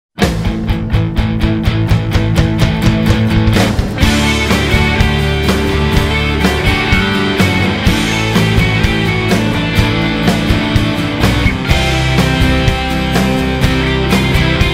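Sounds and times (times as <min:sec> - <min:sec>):
rock music: 0:00.1 - 0:14.7.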